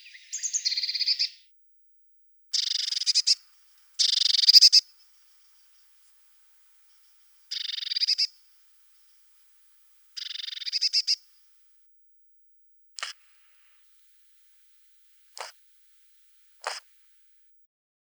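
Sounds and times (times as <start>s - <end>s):
Eurasian blue tit calling: 0.0s - 1.5s, 2.5s - 6.0s, 6.9s - 9.2s, 10.1s - 11.4s.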